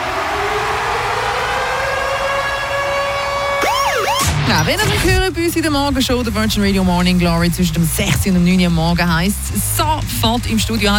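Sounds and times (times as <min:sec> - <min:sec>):
radio contest alarm siren jingle: 0:00.0 - 0:05.3
speech: 0:04.5 - 0:10.9.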